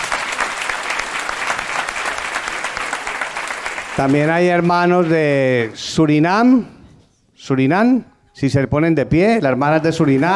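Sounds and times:
audience applause: 0.0 - 5.2
speech: 4.0 - 6.8, 7.4 - 10.3.

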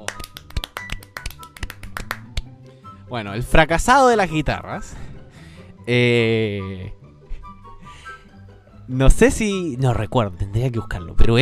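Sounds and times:
applause: 0.0 - 2.5
speech: 3.1 - 5.1, 5.8 - 7.0, 8.9 - 11.4.

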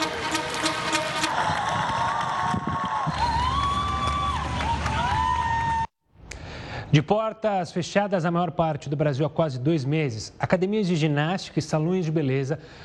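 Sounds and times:
clapping from windows: 0.0 - 5.7
cheering from windows: 0.0 - 5.9
speech: 6.9 - 12.8.

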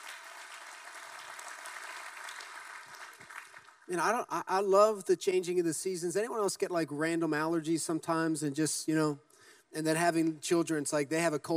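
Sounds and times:
audience clapping: 0.0 - 3.9
speech: 3.9 - 11.5.

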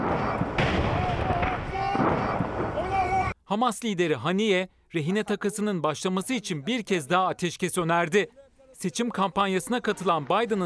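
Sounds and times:
bomb dropped by drone exploding: 0.0 - 3.3
speech: 3.5 - 10.6.

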